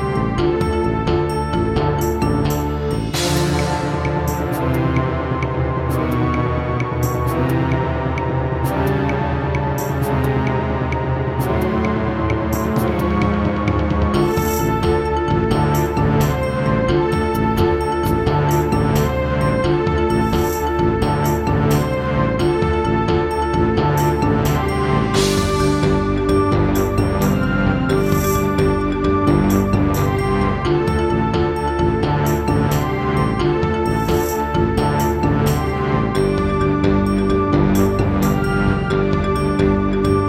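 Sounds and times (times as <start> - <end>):
Roland SD-90 GS mode wavetable synth music: 0.0 - 40.2.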